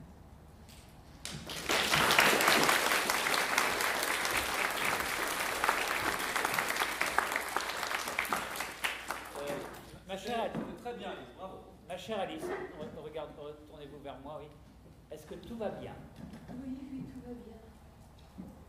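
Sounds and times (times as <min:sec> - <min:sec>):
audience applause: 0:01.2 - 0:09.9
speech: 0:10.5 - 0:17.7.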